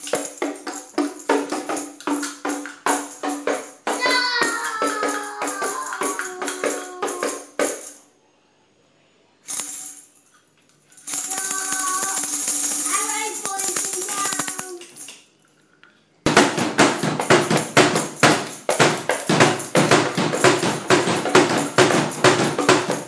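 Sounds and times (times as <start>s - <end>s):
drumming: 0.0s - 7.9s, 11.1s - 14.8s, 16.3s - 23.0s.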